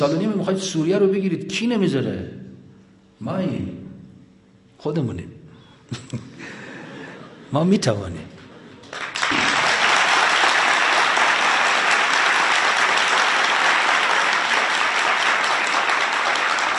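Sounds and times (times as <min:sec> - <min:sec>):
speech: 0:00.0 - 0:02.4, 0:03.2 - 0:03.8, 0:04.8 - 0:05.3, 0:05.9 - 0:06.3, 0:07.5 - 0:08.3
audience applause: 0:08.8 - 0:16.7.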